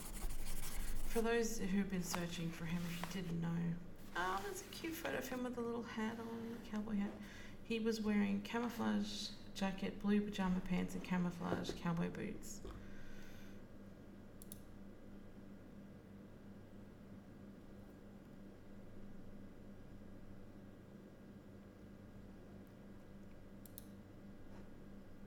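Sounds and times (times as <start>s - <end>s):
speech: 1.2s - 12.7s
computer mouse clicking through photos: 14.4s - 14.6s, 23.2s - 24.0s.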